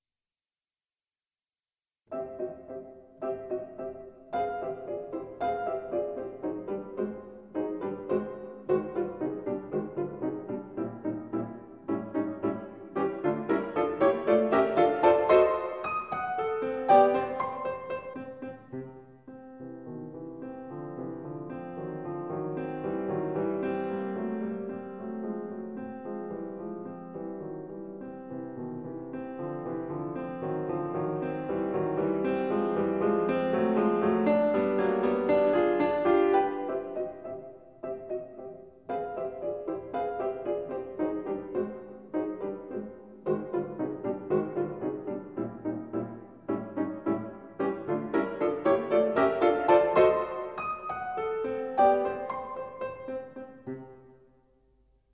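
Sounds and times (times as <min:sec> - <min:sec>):
fortepiano: 0:02.1 - 0:55.1.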